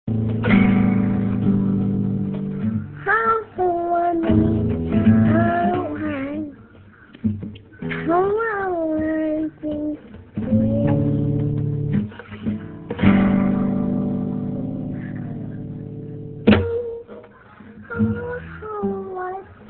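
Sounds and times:
guitar: 0.0s - 19.6s.

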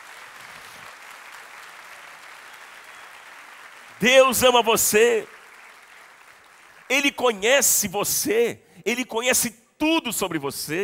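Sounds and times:
crowd applauding: 0.0s - 7.4s
speech: 4.0s - 5.4s, 6.9s - 10.8s.

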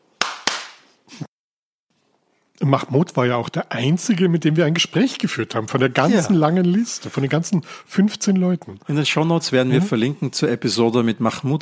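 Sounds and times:
sharp hand claps: 0.2s - 1.0s
speech: 2.6s - 11.6s.

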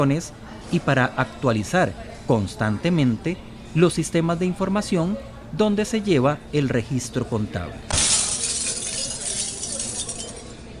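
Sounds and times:
speech: 0.0s - 7.9s
dishes crashing and shattering: 7.9s - 10.7s.

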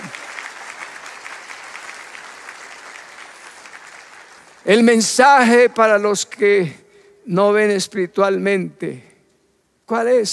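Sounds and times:
audience applause: 0.0s - 5.5s
speech: 4.6s - 9.1s, 9.9s - 10.3s.

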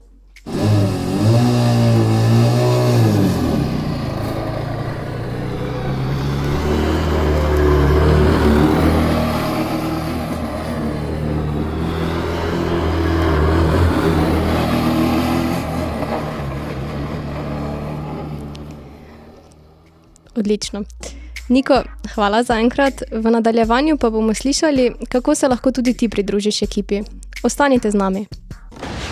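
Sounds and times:
formula racing car engine driving: 0.4s - 20.1s
speech: 20.4s - 28.5s.

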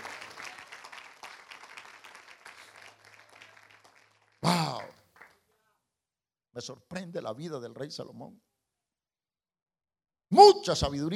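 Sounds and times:
audience applause: 0.0s - 5.4s
speech: 6.6s - 8.5s, 10.4s - 11.1s.

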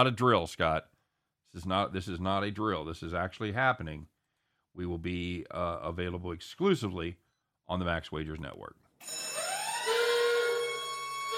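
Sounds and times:
speech: 0.0s - 0.9s, 1.5s - 4.1s, 4.8s - 9.4s
electronic alarm sound effect: 9.0s - 11.3s.

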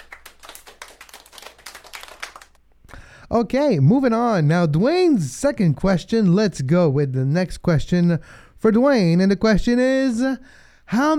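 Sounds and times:
single person clapping quickly as self-applause: 0.0s - 2.6s
speech: 3.3s - 11.1s.

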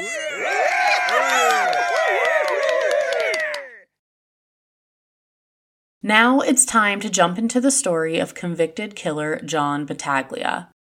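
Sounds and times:
round of applause: 0.5s - 3.9s
speech: 6.1s - 10.7s.

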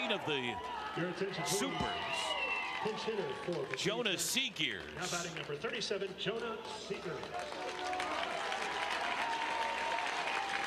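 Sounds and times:
crowd applauding at baseball game: 0.0s - 10.6s
speech: 0.1s - 8.0s.

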